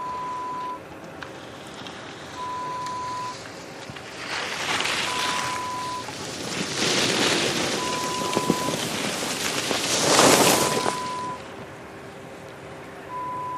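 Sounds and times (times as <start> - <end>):
ski slope ambience: 0.0 - 13.5.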